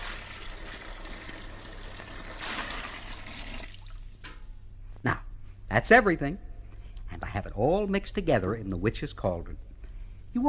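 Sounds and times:
pouring water: 0.0s - 4.2s
speech: 5.8s - 6.5s, 7.6s - 9.7s.

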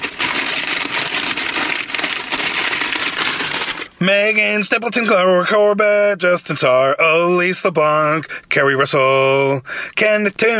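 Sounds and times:
paper bag being crumpled: 0.0s - 4.0s
speech: 4.0s - 10.5s.

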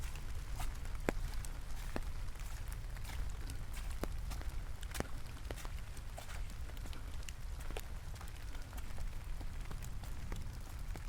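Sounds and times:
rain falling in a lush subtropical rainforest: 0.0s - 11.0s.

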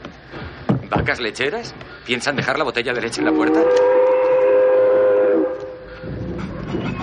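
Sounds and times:
speech: 0.9s - 4.0s
train whistle: 3.2s - 6.2s
train stopping: 3.2s - 7.0s.

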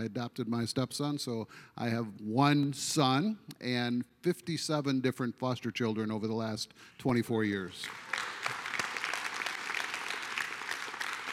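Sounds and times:
speech: 0.0s - 8.6s
sparse audience clapping: 7.7s - 11.3s.

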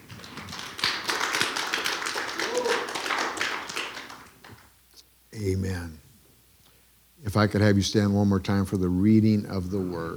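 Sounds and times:
audience clapping: 0.0s - 4.8s
speech: 5.4s - 6.0s, 7.3s - 10.1s.

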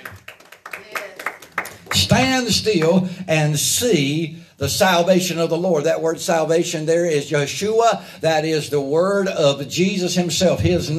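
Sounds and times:
audience hand clapping: 0.0s - 3.0s
speech: 2.1s - 10.9s.

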